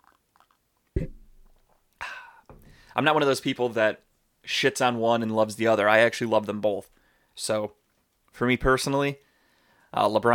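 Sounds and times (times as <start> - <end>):
throaty gulp: 0.0 - 2.5
speech: 3.0 - 7.8, 8.4 - 9.2, 9.9 - 10.3.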